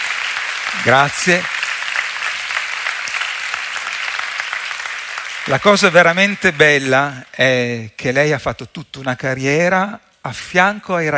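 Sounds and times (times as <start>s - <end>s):
audience applause: 0.0s - 7.2s
speech: 0.7s - 1.6s, 5.5s - 11.1s.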